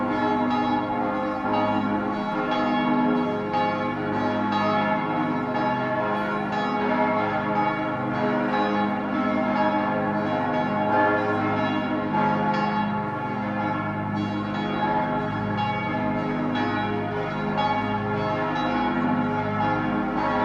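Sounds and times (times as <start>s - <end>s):
bells ringing: 0.0s - 20.4s.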